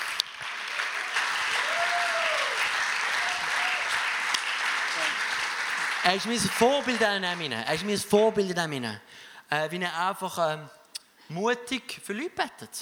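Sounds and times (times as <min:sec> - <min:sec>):
audience applause: 0:00.0 - 0:08.0
speech: 0:06.1 - 0:12.7.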